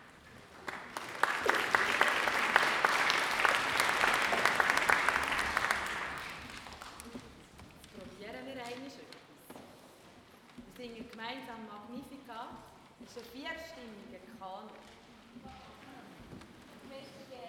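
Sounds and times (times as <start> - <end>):
audience applause: 0.2 - 7.2.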